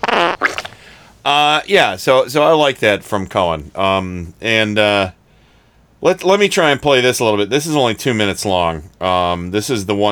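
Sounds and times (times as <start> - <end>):
fart: 0.0 - 0.8
speech: 1.2 - 5.2, 6.0 - 10.0.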